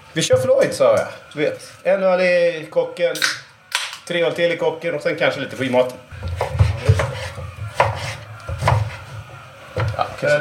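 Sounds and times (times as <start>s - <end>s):
speech: 0.2s - 3.4s, 4.1s - 6.4s, 10.2s - 10.4s
knife chopping sweet potato: 6.2s - 9.1s.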